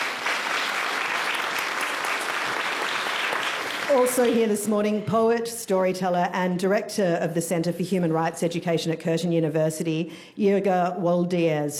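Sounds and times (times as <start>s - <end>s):
audience applause: 0.0s - 4.4s
speech: 3.9s - 11.7s.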